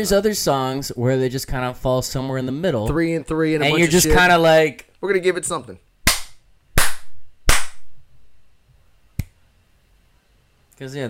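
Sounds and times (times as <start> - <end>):
speech: 0.0 - 5.9, 10.8 - 11.0
hand slaps: 6.1 - 8.0, 9.2 - 9.4
finger snap: 9.2 - 9.4.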